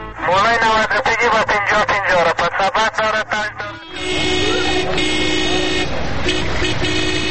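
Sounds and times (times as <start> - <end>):
dense roar of vehicles: 0.1 - 7.2
car horns honking in traffic: 3.5 - 7.2.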